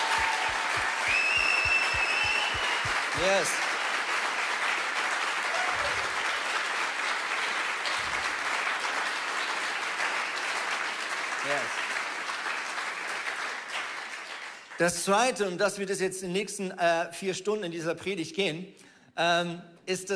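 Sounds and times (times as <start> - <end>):
people shouting and cheering: 0.0 - 8.4
crowd applauding: 0.0 - 15.0
speech: 3.2 - 3.7, 14.8 - 20.1.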